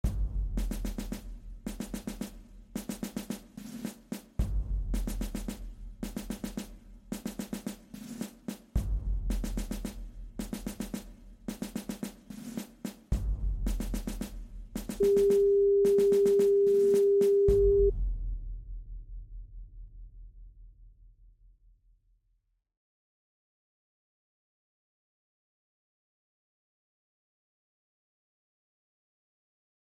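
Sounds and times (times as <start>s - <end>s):
drum beat: 0.0s - 18.2s.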